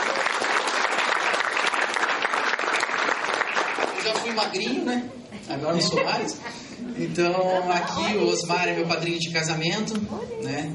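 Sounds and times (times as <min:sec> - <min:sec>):
audience applause: 0:00.0 - 0:04.8
speech: 0:04.2 - 0:10.7
laughter: 0:05.3 - 0:08.3.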